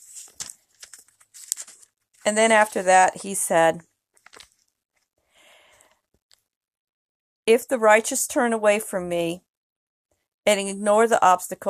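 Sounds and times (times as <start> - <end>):
page turning: 0.0 - 3.4, 4.2 - 4.7
speech: 2.3 - 3.9, 7.5 - 9.5, 10.4 - 11.6.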